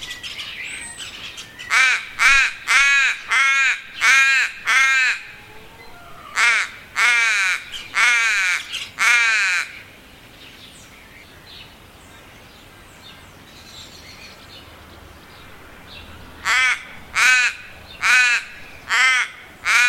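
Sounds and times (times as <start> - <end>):
crow cawing: 1.7 - 9.8, 16.4 - 19.8.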